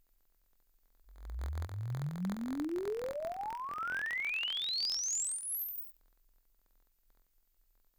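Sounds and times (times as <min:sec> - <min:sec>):
uncalibrated loudspeaker sweep: 0:01.1 - 0:05.9.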